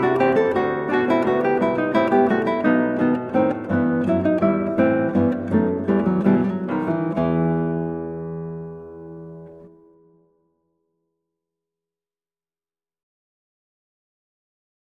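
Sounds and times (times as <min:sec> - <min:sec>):
rondeau in E minor on guitar: 0:00.0 - 0:11.0.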